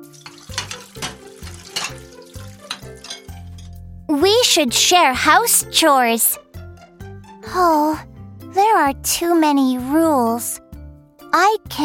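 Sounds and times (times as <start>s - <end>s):
water running from a tap into a sink: 0.0s - 3.2s
dishes clattering and clinking in a sink: 0.0s - 3.8s
speech: 4.1s - 6.4s, 7.6s - 10.6s, 11.3s - 11.8s.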